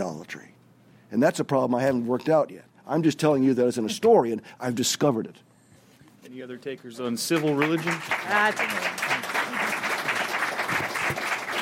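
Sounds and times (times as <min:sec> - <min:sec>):
speech: 0:00.0 - 0:05.5, 0:06.2 - 0:09.0
audience applause: 0:07.3 - 0:11.6.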